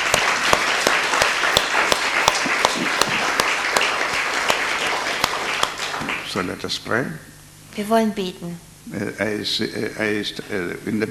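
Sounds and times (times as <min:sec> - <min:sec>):
audience applause: 0:00.0 - 0:06.6
speech: 0:06.4 - 0:11.0.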